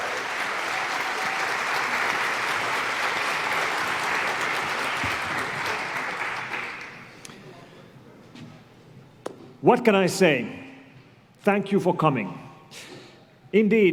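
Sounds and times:
audience applause: 0.0 - 7.2
speech: 9.6 - 10.6, 11.4 - 12.9, 13.5 - 13.9.

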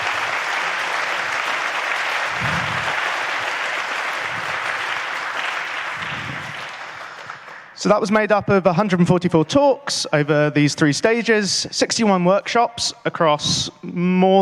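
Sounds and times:
audience round of applause: 0.0 - 7.8
speech: 7.8 - 14.4.

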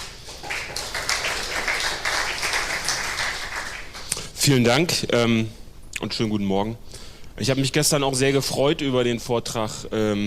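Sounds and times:
audience applause: 0.0 - 4.1
speech: 4.4 - 10.2.

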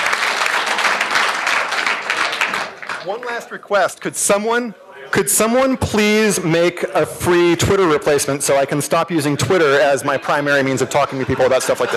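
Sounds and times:
audience applause: 0.0 - 3.4
speech: 3.0 - 11.9
laughter: 9.6 - 11.9.

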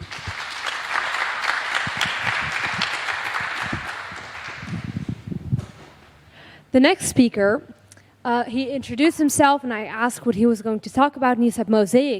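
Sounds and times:
audience applause: 0.0 - 5.3
speech: 6.8 - 12.1.

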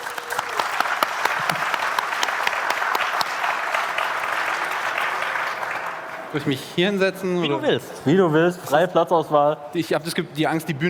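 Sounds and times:
audience applause: 0.0 - 6.5
speech: 6.3 - 10.8.

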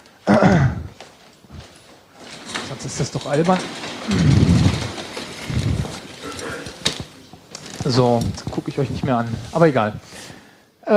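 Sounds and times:
chair pulled up scraping: 0.8 - 10.3
speech: 2.8 - 4.6, 7.9 - 10.3.

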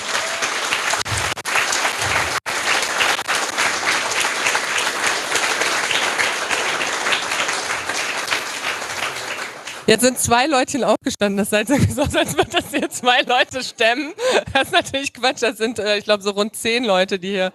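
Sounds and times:
audience applause: 0.0 - 10.2
speech: 9.9 - 17.5
laughter: 11.7 - 14.8.

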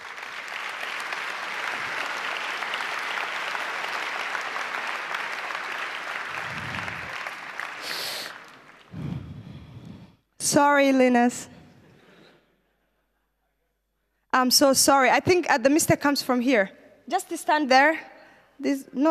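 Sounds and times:
audience applause: 0.0 - 9.2
speech: 10.5 - 11.5, 14.4 - 19.0.

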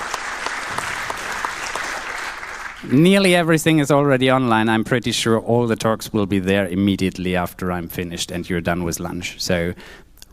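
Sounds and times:
audience applause at a conference: 0.0 - 2.9
speech: 2.8 - 10.3.

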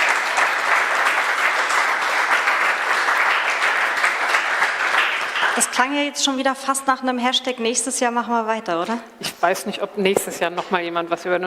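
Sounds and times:
audience applause: 0.0 - 5.9
speech: 5.6 - 11.4.

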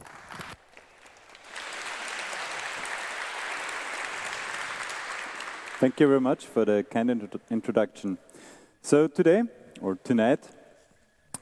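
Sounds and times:
audience applause: 0.0 - 6.5
speech: 5.8 - 10.6.

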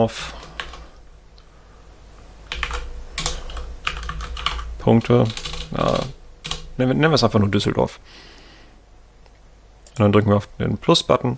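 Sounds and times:
speech: 0.0 - 0.4, 4.8 - 6.2, 6.8 - 8.3, 10.0 - 11.3
typing a project name on a computer keyboard: 0.0 - 1.0, 2.4 - 7.8.

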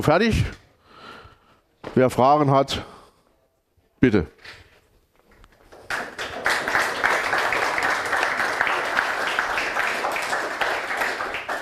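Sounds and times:
speech: 0.0 - 0.6, 1.9 - 3.0, 4.0 - 4.6
audience applause after a talk: 5.7 - 11.6.

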